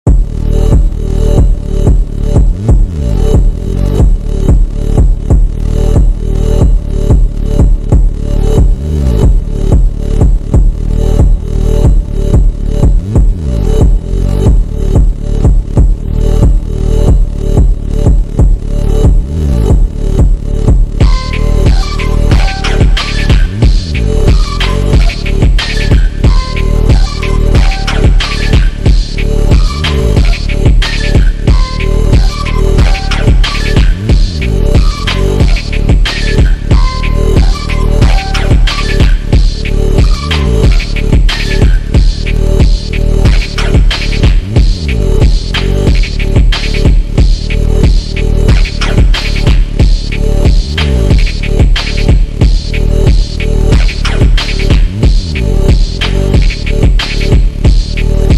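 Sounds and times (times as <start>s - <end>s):
slowed instrumental music: 0.1s - 58.3s.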